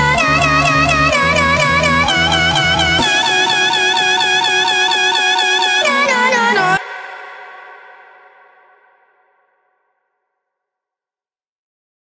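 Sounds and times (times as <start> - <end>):
song cover: 0.0 - 8.3.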